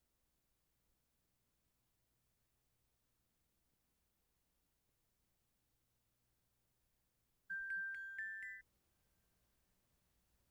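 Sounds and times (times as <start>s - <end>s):
xylophone: 7.5s - 8.6s.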